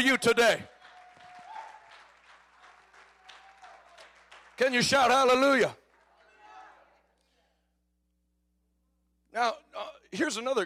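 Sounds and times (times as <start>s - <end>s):
speech: 0.0s - 0.7s, 4.6s - 5.8s, 9.3s - 10.6s
audience clapping hands: 0.0s - 7.0s.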